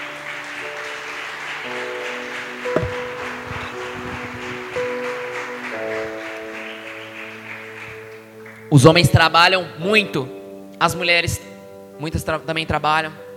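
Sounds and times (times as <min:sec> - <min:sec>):
audience applauding: 0:00.0 - 0:08.8
speech: 0:08.7 - 0:13.2.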